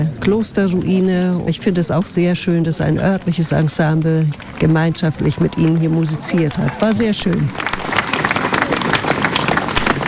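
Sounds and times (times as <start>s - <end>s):
speech: 0.0s - 7.9s
audience applause: 3.4s - 10.0s.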